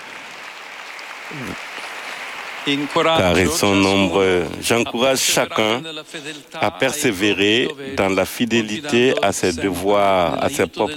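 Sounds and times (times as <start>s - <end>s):
large crowd of pilgrims applauding: 0.0s - 4.5s
speech: 1.3s - 1.8s, 2.6s - 10.9s.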